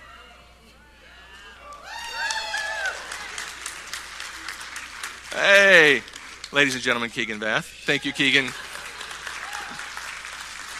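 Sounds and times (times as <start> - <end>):
audience cheering with whoops and shouted calls: 1.3 - 6.0, 7.9 - 10.7
audience applause: 1.7 - 10.7
speech: 5.4 - 8.6.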